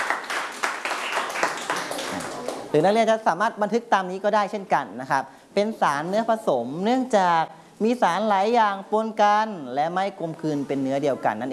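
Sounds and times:
students in a classroom applauding a classmate: 0.0 - 2.7
speech: 2.7 - 11.5.

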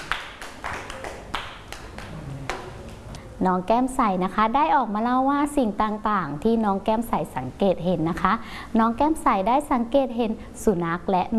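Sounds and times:
children clapping hands: 0.0 - 3.0
speech: 3.4 - 11.3.

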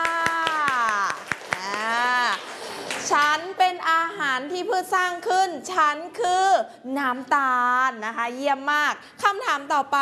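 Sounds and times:
hands clapping: 0.0 - 3.3
speech: 4.4 - 10.0.

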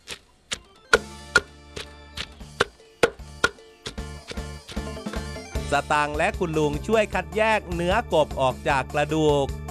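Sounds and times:
pestle pounding herbs in a mortar: 0.9 - 5.3
speech: 5.7 - 9.6.

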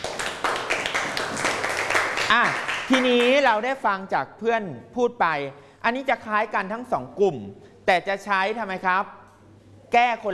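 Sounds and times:
group of people clapping for a classmate: 0.0 - 3.6
speech: 2.3 - 9.2, 9.9 - 10.3.

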